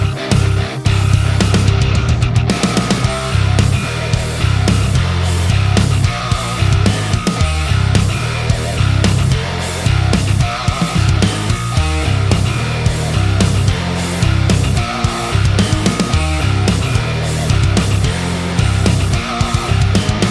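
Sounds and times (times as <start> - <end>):
buzzer bass: 0.0 - 20.3.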